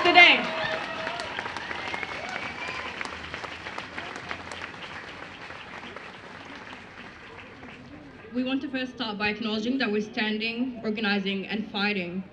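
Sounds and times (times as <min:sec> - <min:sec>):
crowd applause: 0:00.0 - 0:08.3
speech: 0:08.4 - 0:12.3.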